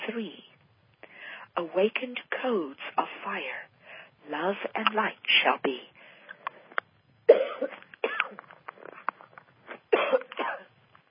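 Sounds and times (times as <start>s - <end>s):
speech: 0.2s - 0.4s, 1.6s - 3.7s, 4.3s - 5.9s
person with a strained throat coughing after hours of taping shows: 7.3s - 8.4s, 9.9s - 10.7s.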